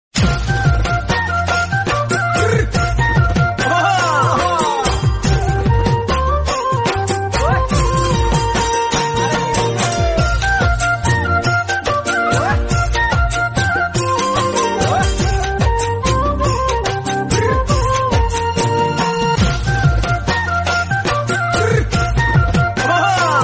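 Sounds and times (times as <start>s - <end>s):
Assamese bihu folk music: 0.2s - 23.4s.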